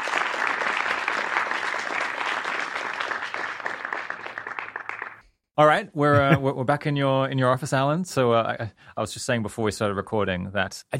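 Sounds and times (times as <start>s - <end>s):
live audience applause: 0.0s - 5.2s
speech: 5.6s - 10.9s.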